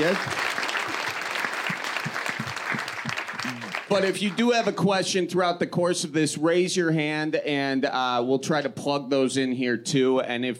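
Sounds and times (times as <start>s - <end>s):
speech: 0.0s - 0.5s, 3.9s - 10.5s
audience applause: 0.0s - 4.8s.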